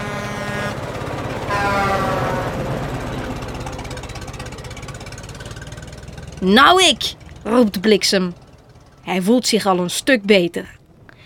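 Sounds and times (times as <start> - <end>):
truck horn blast: 0.0 - 3.3
truck engine racing uphill: 0.0 - 11.2
speech: 6.4 - 8.4, 9.0 - 10.8.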